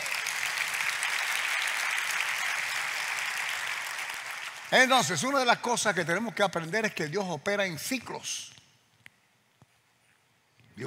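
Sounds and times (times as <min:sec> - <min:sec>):
audience applause: 0:00.0 - 0:05.3
speech: 0:04.7 - 0:08.6.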